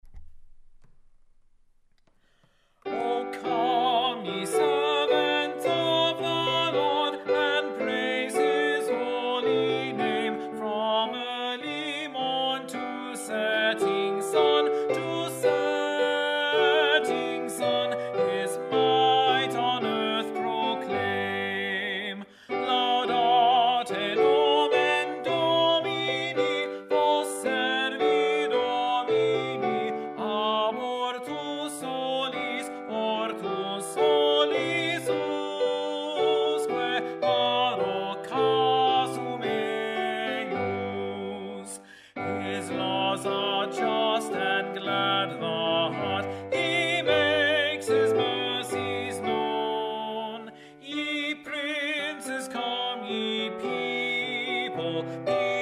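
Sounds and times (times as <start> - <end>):
tenor singing: 2.9 - 55.5.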